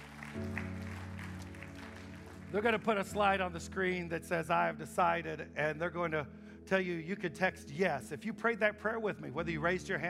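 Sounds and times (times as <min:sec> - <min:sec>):
audience clapping: 0:00.0 - 0:03.3
speech: 0:02.5 - 0:10.0.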